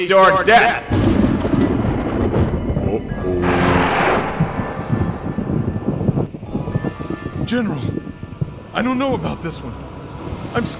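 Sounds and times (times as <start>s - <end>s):
speech: 0.0s - 1.0s, 2.9s - 3.6s, 7.5s - 8.0s, 8.8s - 9.8s, 10.5s - 10.7s
thunder: 0.9s - 7.3s.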